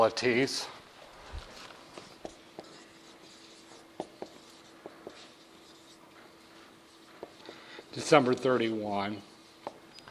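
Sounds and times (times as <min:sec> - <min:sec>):
speech: 0:00.0 - 0:00.8, 0:08.0 - 0:09.3
pen scratching notes on an overhead projector sheet: 0:02.0 - 0:07.8.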